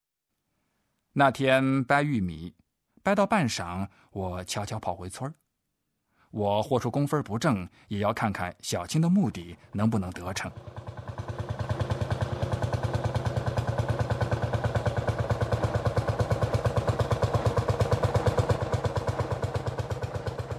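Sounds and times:
speech: 1.2 - 5.4, 6.3 - 11.0
tractor engine chugging: 10.1 - 20.5.

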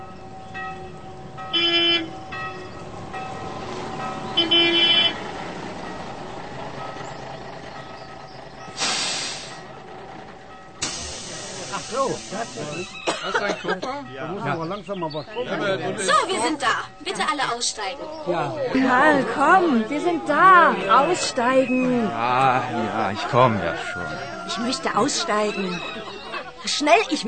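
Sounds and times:
moving bus engine rumble: 0.0 - 27.2
rattles inside a moving bus: 0.6 - 13.2
bus air-brake or door hiss: 8.7 - 9.7, 10.8 - 13.1
laughter: 11.1 - 14.1, 15.2 - 27.2
speech: 13.7 - 27.2.

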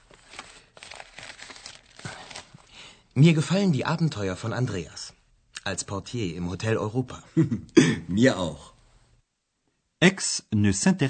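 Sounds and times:
paper letter being unfolded: 0.0 - 2.9
speech: 3.2 - 8.7, 10.0 - 11.0.

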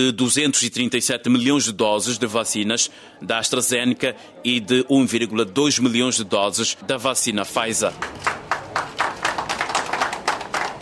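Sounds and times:
speech: 0.0 - 8.5
people clapping at a vaccine delivery in Angola: 7.6 - 10.8.

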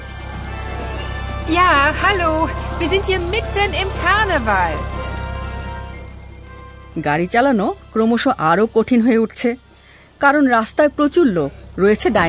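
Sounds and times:
carnival crowd voices whooping and calling: 0.0 - 4.7
carnival crowd rumble: 0.0 - 6.8
speech: 1.5 - 5.0, 7.0 - 9.6, 10.2 - 12.2.

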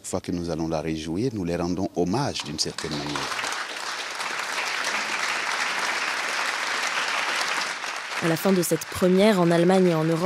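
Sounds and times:
speech: 0.1 - 3.4, 8.2 - 10.2
audience standing ovation applause: 2.4 - 10.2.

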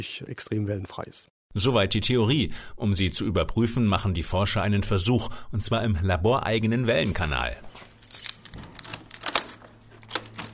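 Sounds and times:
speech: 0.0 - 7.9
keys jangling: 7.6 - 10.5
hall door being unlocked: 8.0 - 10.5.

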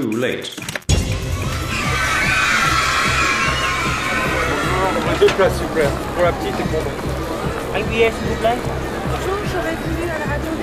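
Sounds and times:
speech: 0.1 - 0.8, 4.8 - 10.2
funfair crowd at the Jardin des Tuileries: 0.9 - 10.6
children shouting: 1.3 - 5.6.

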